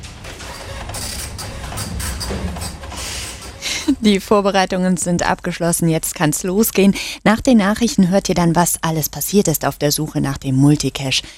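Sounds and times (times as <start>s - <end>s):
printer printing out papers: 0.0s - 5.3s
speech: 4.0s - 11.3s.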